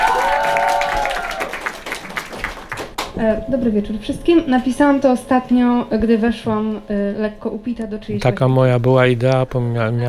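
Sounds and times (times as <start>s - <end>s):
audience applause: 0.0s - 3.2s
speech: 3.2s - 10.0s.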